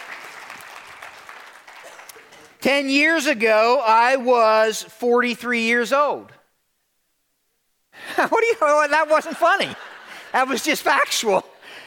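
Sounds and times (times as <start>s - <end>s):
audience clapping: 0.0s - 2.6s
speech: 2.6s - 6.4s, 8.2s - 11.5s.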